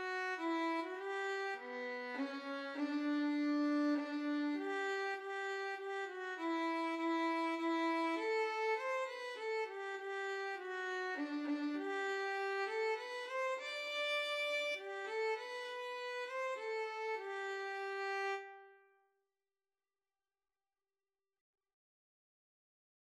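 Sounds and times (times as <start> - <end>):
violin and cello duet playing an anthem: 0.0 - 18.4.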